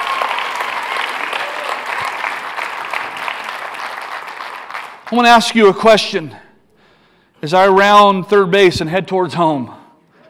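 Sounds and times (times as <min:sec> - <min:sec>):
audience applause: 0:00.0 - 0:05.2
speech: 0:05.1 - 0:06.4, 0:07.4 - 0:09.8.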